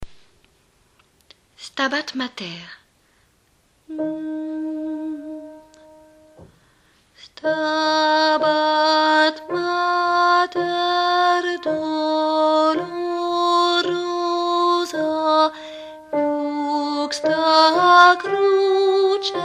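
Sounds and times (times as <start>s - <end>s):
alto singing: 3.9s - 6.5s, 7.4s - 19.4s.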